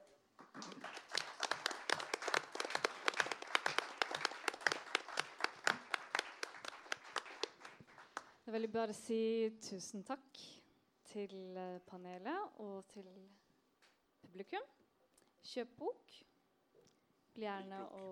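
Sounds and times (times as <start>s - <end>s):
audience clapping: 0.0s - 8.4s
speech: 8.5s - 10.5s, 11.1s - 13.4s, 14.3s - 14.8s, 15.4s - 16.2s, 17.4s - 18.1s.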